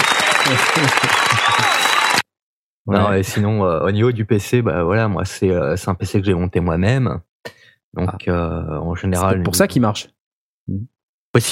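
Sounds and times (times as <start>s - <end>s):
applause: 0.0s - 2.2s
laughter: 0.4s - 2.0s
speech: 0.5s - 1.9s, 2.9s - 11.5s.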